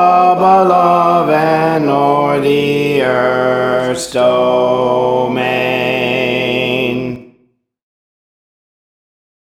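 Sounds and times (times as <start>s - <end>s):
alto voice singing songs: 0.0s - 7.4s.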